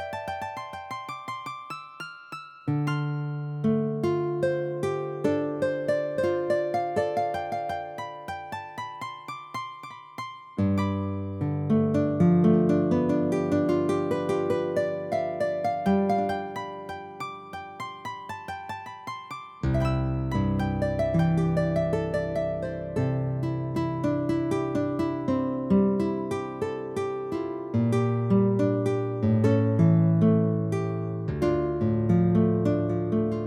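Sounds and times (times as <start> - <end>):
guitar: 2.8 - 8.2, 10.6 - 17.6, 19.6 - 33.4.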